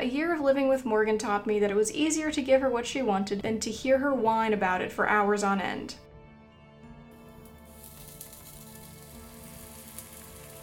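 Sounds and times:
speech: 0.3s - 6.1s
batter sizzling on a cast iron pan: 7.1s - 10.6s.

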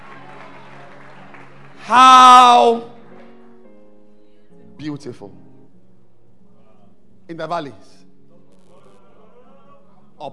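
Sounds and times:
audience clapping hands: 0.0s - 3.5s
speech: 1.9s - 2.9s, 4.8s - 5.5s, 7.3s - 8.0s.

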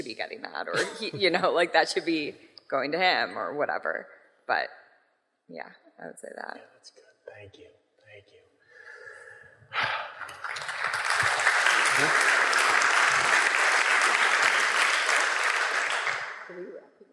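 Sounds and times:
speech: 0.1s - 4.8s, 5.5s - 8.4s, 12.0s - 12.3s, 16.5s - 16.9s
group clapping: 9.8s - 16.5s.

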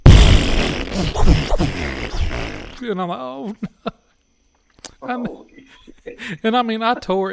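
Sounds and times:
person imitating a loud fart: 0.0s - 2.8s
speech: 1.0s - 1.8s, 2.8s - 4.0s, 5.0s - 7.3s.

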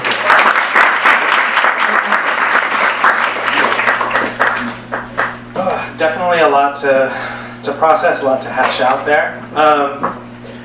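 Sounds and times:
audience applause: 0.0s - 5.4s
low steady hum: 0.0s - 10.6s
speech: 6.0s - 10.2s.

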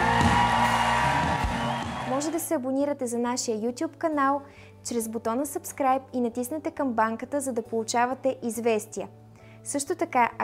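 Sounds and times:
audience applauding and cheering: 0.0s - 2.4s
speech: 2.2s - 10.4s.

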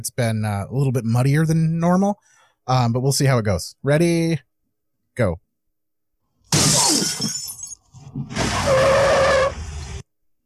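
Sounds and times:
speech: 0.0s - 4.5s, 5.2s - 5.4s, 8.1s - 9.1s
van window glass shattering: 6.5s - 7.9s
squealing tone: 6.8s - 10.0s.

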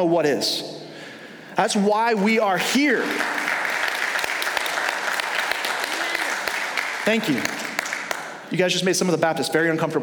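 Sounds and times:
speech: 0.0s - 0.8s, 1.6s - 3.4s, 7.1s - 7.6s, 8.5s - 10.0s
audience clapping in church: 2.1s - 8.5s.

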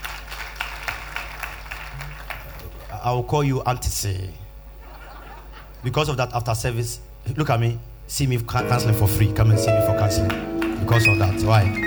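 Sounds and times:
hands clapping: 0.0s - 3.0s, 9.8s - 11.8s
speech: 3.0s - 4.4s, 5.8s - 11.8s
laughter: 4.8s - 5.8s.

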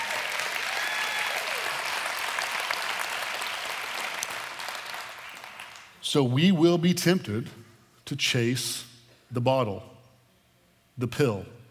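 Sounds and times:
audience clapping hands: 0.0s - 6.0s
speech: 6.1s - 9.9s, 11.0s - 11.6s.

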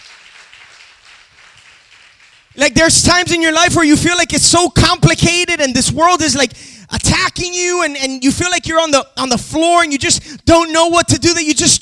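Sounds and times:
audience clapping: 0.0s - 2.7s
speech: 2.6s - 11.8s.

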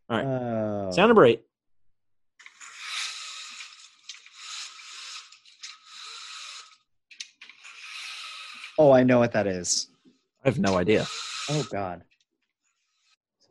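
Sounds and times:
speech: 0.1s - 1.5s, 8.9s - 12.1s
window blinds being closed: 2.4s - 9.1s.

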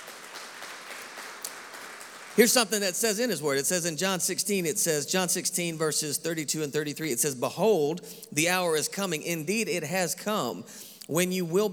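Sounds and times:
audience hand clapping: 0.0s - 2.6s
speech: 2.4s - 11.7s.

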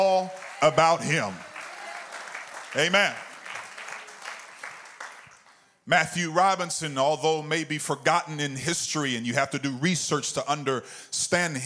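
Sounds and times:
speech: 0.0s - 1.5s, 2.7s - 3.3s, 5.9s - 11.6s
clapping hands: 0.0s - 5.6s.

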